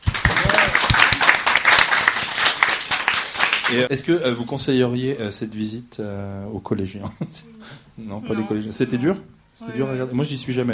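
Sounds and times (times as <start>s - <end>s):
audience applause: 0.0s - 3.9s
speech: 3.7s - 10.7s.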